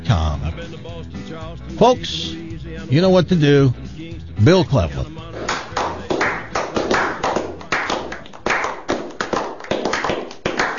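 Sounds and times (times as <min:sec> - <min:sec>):
speech: 0:00.1 - 0:03.8, 0:04.4 - 0:05.2
applause from a few people: 0:05.4 - 0:10.7.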